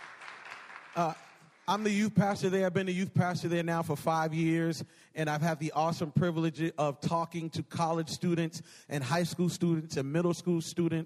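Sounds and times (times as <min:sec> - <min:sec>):
crowd clapping: 0:00.0 - 0:01.9
speech: 0:01.0 - 0:11.0.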